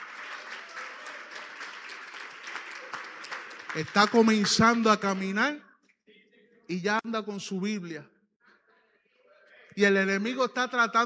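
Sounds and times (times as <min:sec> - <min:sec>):
audience applause: 0:00.0 - 0:05.5
speech: 0:03.8 - 0:05.7, 0:06.7 - 0:08.1, 0:09.8 - 0:11.0.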